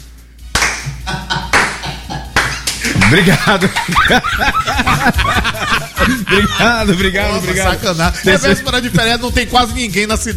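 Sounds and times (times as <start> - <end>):
scattered clapping: 0.5 - 4.1
laughter: 1.0 - 9.0
speech: 3.1 - 10.3.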